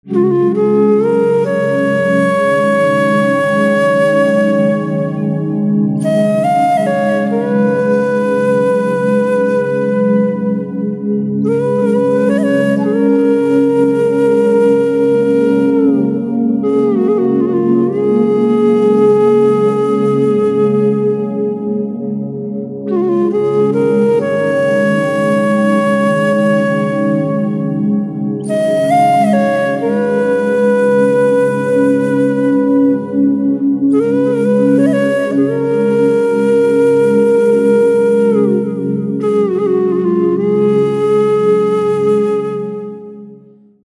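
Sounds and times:
instrumental flute ringtone: 0:00.0 - 0:43.9.

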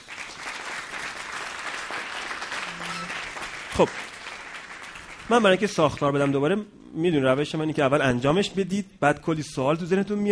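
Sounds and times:
audience applause: 0:00.0 - 0:06.4
speech: 0:03.8 - 0:04.0, 0:05.3 - 0:10.3.

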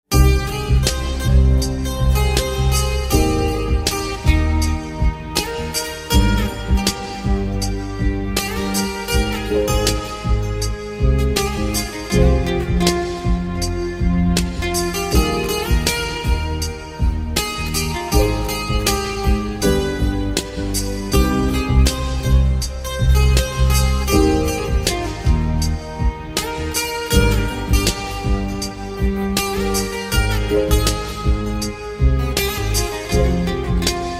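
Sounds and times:
guitar: 0:00.0 - 0:34.1.

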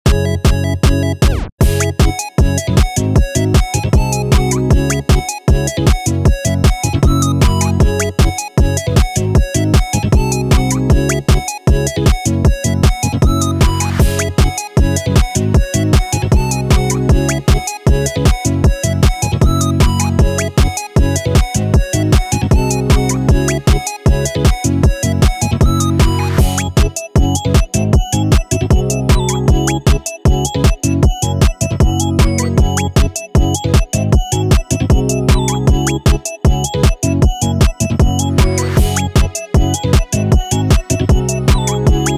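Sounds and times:
pluggnb beat: 0:00.1 - 0:42.1.

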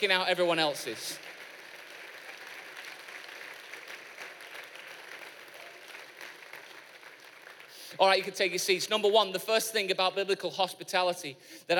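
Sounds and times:
speech: 0:00.0 - 0:01.3, 0:08.0 - 0:11.7
large church audience applauding: 0:00.3 - 0:08.3.

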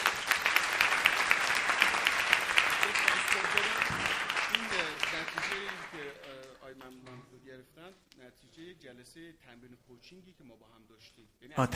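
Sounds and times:
audience applause: 0:00.0 - 0:06.6
speech: 0:09.0 - 0:11.7.

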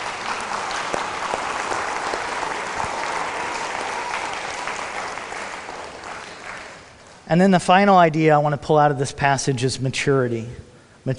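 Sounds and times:
audience applause: 0:00.0 - 0:07.2
speech: 0:07.3 - 0:11.1.

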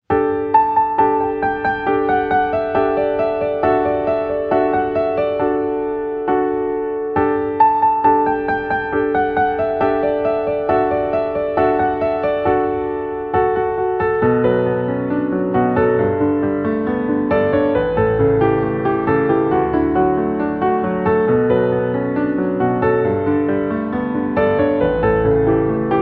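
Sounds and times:
piano: 0:00.0 - 0:25.9.

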